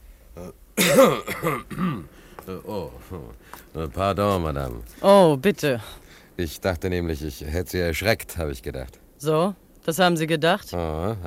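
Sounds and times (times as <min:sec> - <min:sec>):
speech: 0:00.4 - 0:01.9, 0:02.7 - 0:11.2
man coughing and clearing his throat: 0:00.4 - 0:03.3.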